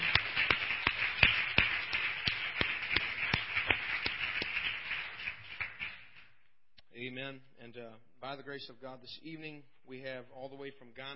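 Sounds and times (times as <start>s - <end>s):
audience applause: 0.0s - 6.1s
speech: 7.3s - 11.1s.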